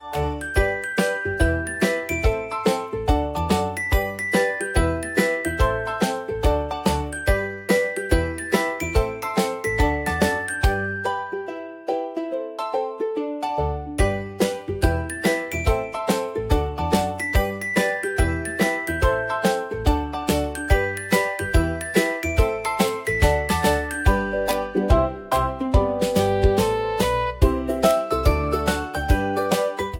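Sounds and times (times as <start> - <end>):
playful music: 0.0 - 29.9.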